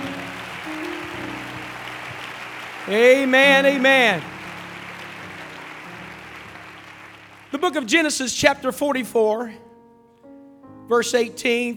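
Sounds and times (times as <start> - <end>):
sustained low musical tones: 0.0 - 7.8
audience clapping: 0.0 - 8.3
speech: 2.9 - 4.3, 7.5 - 9.6, 10.9 - 11.7.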